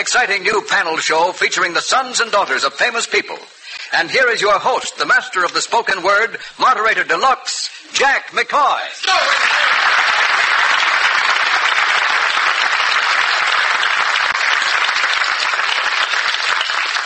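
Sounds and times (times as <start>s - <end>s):
speech: 0.0s - 10.1s
studio audience applause: 9.0s - 17.0s.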